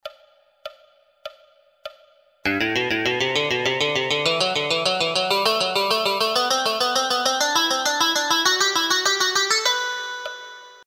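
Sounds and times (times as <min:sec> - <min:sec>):
musical scales: 0:02.5 - 0:10.8.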